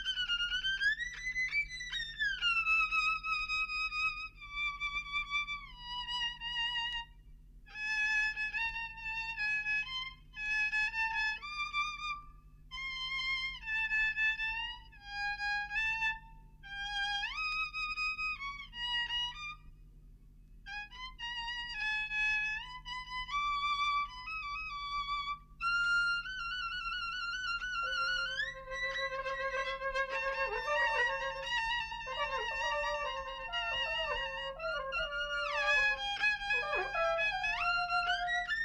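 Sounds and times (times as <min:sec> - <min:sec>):
violin: 0:00.0 - 0:19.8, 0:20.6 - 0:38.6.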